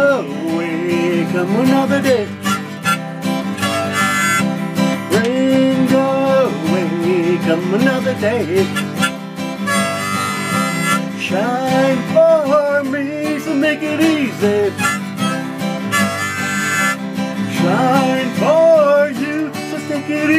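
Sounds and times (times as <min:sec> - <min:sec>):
guitar: 0:00.0 - 0:20.3
harmonica: 0:01.8 - 0:05.3, 0:08.2 - 0:11.3, 0:14.0 - 0:18.1.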